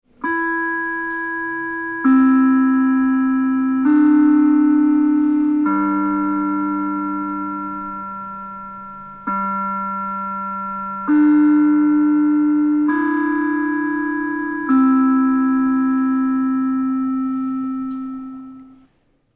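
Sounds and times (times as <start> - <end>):
Big Ben door chime: 0.2 - 18.9.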